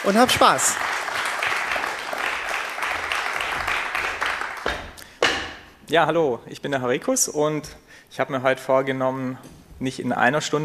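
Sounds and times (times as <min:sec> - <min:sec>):
speech: 0:00.0 - 0:01.0, 0:05.9 - 0:10.6
audience applause: 0:00.0 - 0:04.7.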